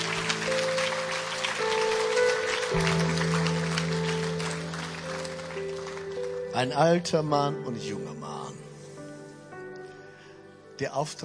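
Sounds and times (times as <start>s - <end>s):
audience applauding: 0.0s - 7.1s
sustained low keyboard chords: 0.0s - 11.2s
speech: 6.6s - 8.6s, 10.8s - 11.2s.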